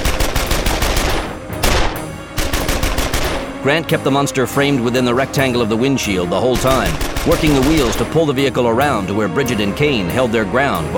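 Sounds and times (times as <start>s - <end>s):
heavy machine gun continuous fire: 0.0s - 3.6s, 6.6s - 8.1s
speech: 3.6s - 10.9s.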